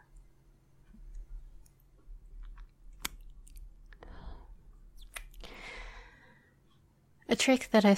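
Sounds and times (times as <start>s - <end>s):
faint hum: 0.0s - 7.9s
wet kissing smacks on back of a hand: 5.0s - 5.3s
speech: 7.4s - 7.9s.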